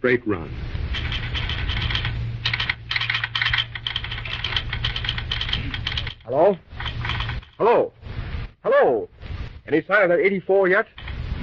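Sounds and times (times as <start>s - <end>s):
speech: 0.0s - 1.0s, 5.6s - 6.7s, 7.6s - 8.0s, 8.6s - 11.0s
telegraph key clicking: 0.9s - 7.5s.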